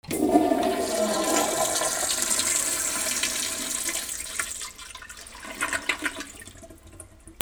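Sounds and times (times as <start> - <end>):
bathroom ambience: 0.0 - 7.3.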